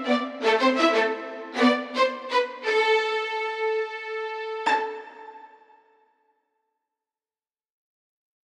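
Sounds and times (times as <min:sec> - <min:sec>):
violins: 0:00.0 - 0:05.8.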